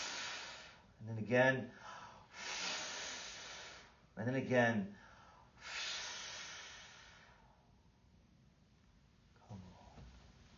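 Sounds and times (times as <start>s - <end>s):
breath blown out forcefully during a prayer: 0.0s - 0.8s, 1.8s - 4.0s, 5.0s - 7.4s
speech: 1.0s - 2.0s, 4.2s - 5.0s.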